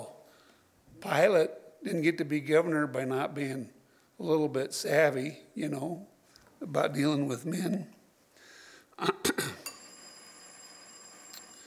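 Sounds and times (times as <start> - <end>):
speech: 1.1 - 8.0, 9.0 - 9.3
signal or alarm bell ringing: 9.6 - 11.6.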